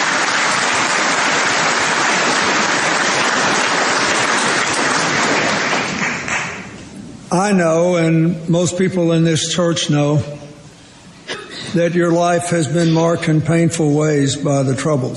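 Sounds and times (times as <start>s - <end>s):
applause in a church: 0.0s - 6.8s
speech: 7.3s - 10.4s, 11.7s - 15.1s.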